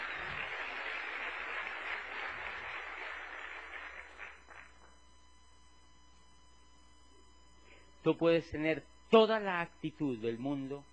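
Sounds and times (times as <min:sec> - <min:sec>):
audience applause: 0:00.0 - 0:04.9
speech: 0:08.0 - 0:10.9.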